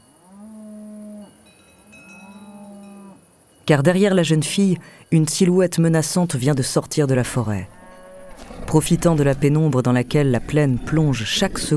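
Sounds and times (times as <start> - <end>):
frightened cows mooing: 0.3 - 3.3, 7.2 - 11.7
speech: 3.7 - 7.8, 8.7 - 11.7.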